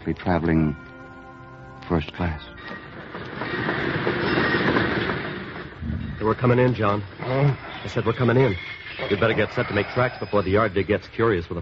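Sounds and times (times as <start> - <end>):
speech: 0.1 - 0.9, 1.9 - 2.8, 6.2 - 11.6
train rumbling on rails: 2.5 - 10.4
train wheels clattering: 2.6 - 10.5.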